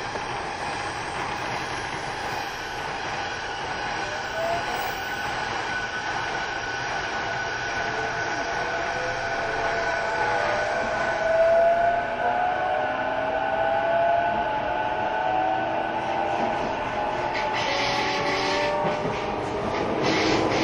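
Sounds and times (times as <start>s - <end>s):
hiss and clatter: 0.0s - 3.7s, 17.3s - 20.6s
train rumbling with rattling wheels: 0.0s - 20.6s.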